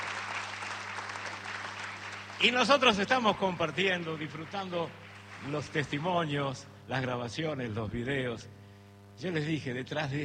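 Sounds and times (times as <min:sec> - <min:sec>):
loud applause: 0:00.0 - 0:06.0
speech: 0:02.4 - 0:08.6, 0:09.2 - 0:10.2.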